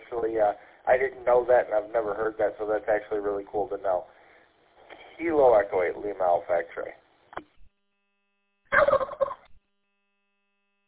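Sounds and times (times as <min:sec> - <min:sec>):
speech: 0:00.2 - 0:04.2, 0:05.2 - 0:07.0
radio static click: 0:04.8 - 0:05.3, 0:07.2 - 0:07.7
turkey gobble sound through a radio channel on unkey: 0:08.7 - 0:09.5.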